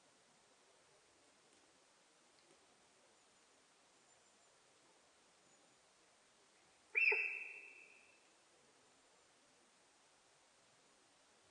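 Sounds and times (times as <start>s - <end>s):
sika deer whistle call: 7.0s - 8.0s.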